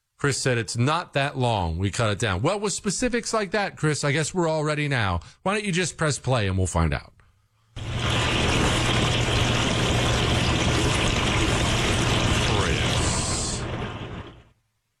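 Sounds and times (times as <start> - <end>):
speech: 0.2 - 7.2
dishwasher running: 7.8 - 14.6.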